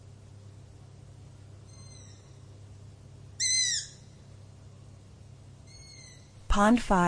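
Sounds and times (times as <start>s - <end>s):
low background hum: 0.0s - 7.0s
owl scream: 1.6s - 2.5s, 3.4s - 4.2s, 5.6s - 6.4s.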